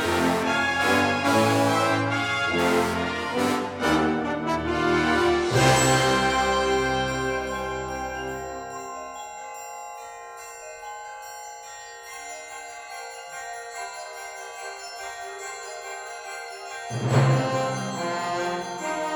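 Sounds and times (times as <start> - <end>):
fanfare: 0.0 - 8.8, 16.9 - 19.1.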